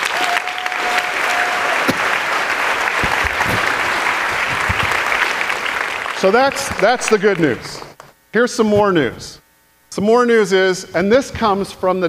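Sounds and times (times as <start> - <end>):
crowd applause: 0.0 - 7.9
speech: 6.2 - 9.4, 10.0 - 12.0.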